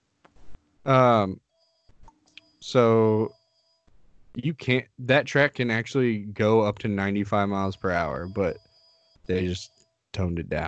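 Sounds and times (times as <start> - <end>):
speech: 0.8 - 1.4, 2.6 - 3.4, 4.4 - 8.6, 9.3 - 10.6
mobile phone ringing: 1.4 - 3.9, 6.4 - 10.0.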